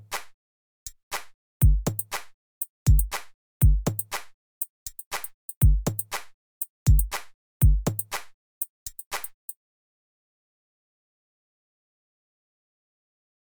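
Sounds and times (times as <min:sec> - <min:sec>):
band drum kit playing: 0:01.6 - 0:04.1, 0:04.9 - 0:08.2, 0:08.8 - 0:09.6.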